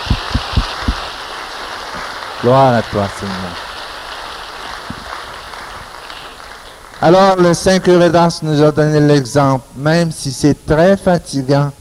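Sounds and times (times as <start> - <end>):
soft low thumps: 0.0 - 1.0
crowd applauding: 0.0 - 8.2
speech: 2.4 - 3.7, 7.0 - 11.7.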